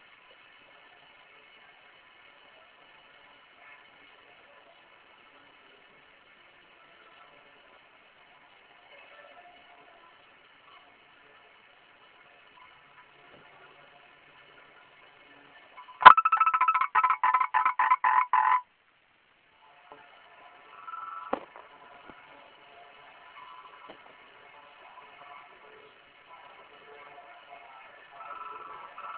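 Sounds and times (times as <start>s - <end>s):
frog croaking in rasping pulses: 16.0s - 18.6s.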